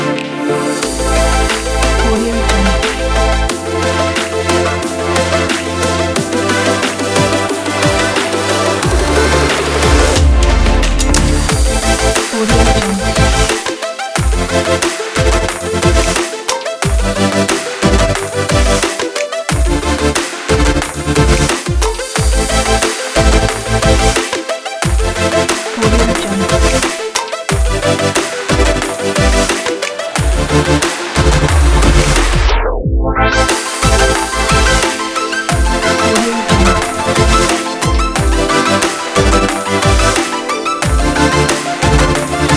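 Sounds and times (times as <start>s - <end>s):
modern dubstep loop: 0.1s - 42.5s.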